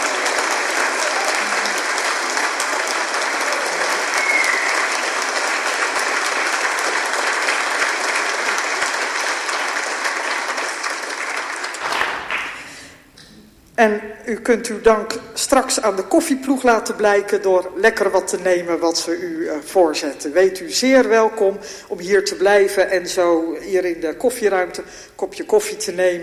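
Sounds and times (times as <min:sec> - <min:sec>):
audience applause: 0:00.0 - 0:12.9
speech: 0:13.8 - 0:26.2.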